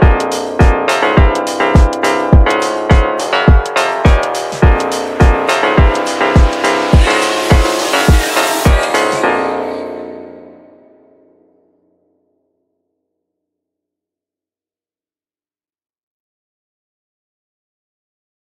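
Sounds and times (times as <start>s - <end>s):
phonk music: 0.0s - 10.8s.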